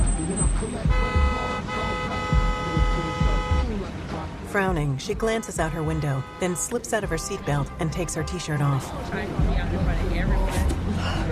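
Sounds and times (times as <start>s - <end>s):
car horn blaring: 0.0s - 3.9s, 4.6s - 9.5s
engine throbbing: 0.0s - 11.2s
low rumble of traffic: 0.0s - 11.2s
speech: 0.6s - 1.2s, 4.5s - 11.2s.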